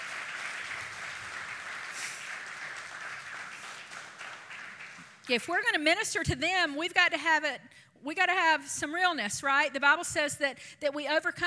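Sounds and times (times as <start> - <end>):
audience applause: 0.0 - 5.2
speech: 5.3 - 11.4.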